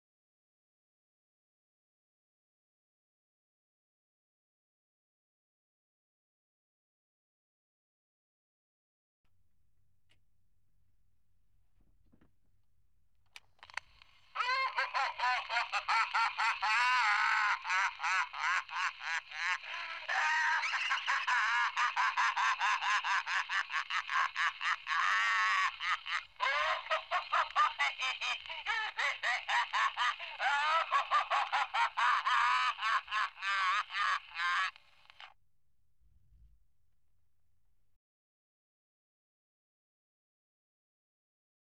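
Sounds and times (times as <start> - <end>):
laughing: 13.6 - 35.3.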